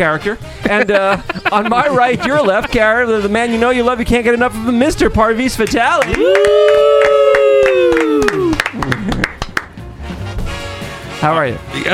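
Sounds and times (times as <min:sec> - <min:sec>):
speech: 0:00.0 - 0:07.2, 0:11.2 - 0:11.9
laughter: 0:00.6 - 0:03.6, 0:07.8 - 0:09.5
audience clapping: 0:05.6 - 0:09.8
sustained voice or cheer: 0:06.0 - 0:09.1.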